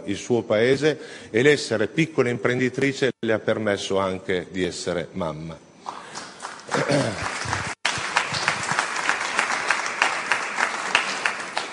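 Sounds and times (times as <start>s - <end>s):
speech: 0.0s - 5.7s, 6.9s - 7.6s
audience applause: 6.0s - 11.7s.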